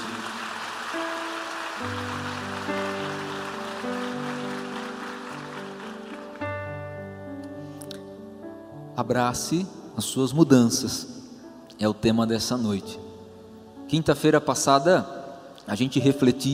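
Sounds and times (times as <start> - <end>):
audience applauding: 0.0 - 6.6
speech: 9.0 - 11.2, 11.8 - 13.0, 13.9 - 16.5.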